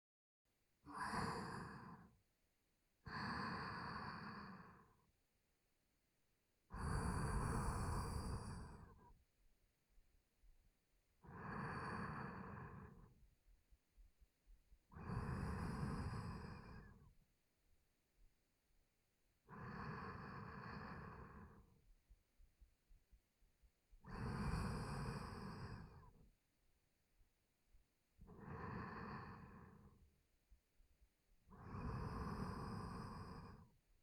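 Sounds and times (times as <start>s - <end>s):
sleep breathing through nose, left side: 3.1s - 5.0s, 6.8s - 9.1s, 11.3s - 13.1s, 15.0s - 17.1s, 19.5s - 21.7s, 24.1s - 26.2s, 28.3s - 30.0s, 31.5s - 33.7s.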